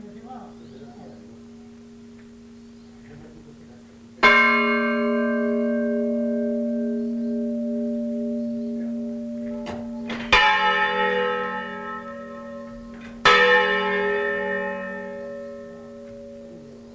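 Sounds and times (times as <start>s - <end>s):
bell: 4.2s - 16.9s.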